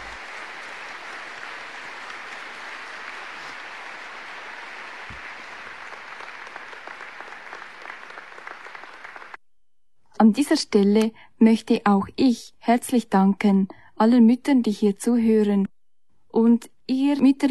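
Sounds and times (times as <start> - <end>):
audience applause greeting mothers: 0.0 - 9.4
speech: 10.2 - 15.7, 16.4 - 17.4.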